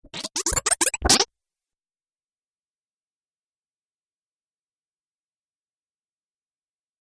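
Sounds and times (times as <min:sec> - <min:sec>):
laser sound effect: 0:00.0 - 0:01.2.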